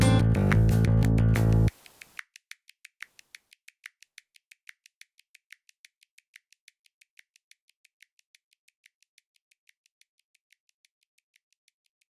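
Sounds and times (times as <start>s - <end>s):
music with bass: 0.0s - 1.7s.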